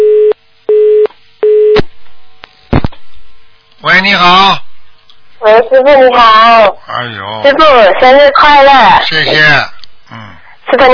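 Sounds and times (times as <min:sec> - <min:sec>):
telephone busy signal after dropped call: 0:00.0 - 0:01.8
speech: 0:03.9 - 0:04.6, 0:05.4 - 0:10.9.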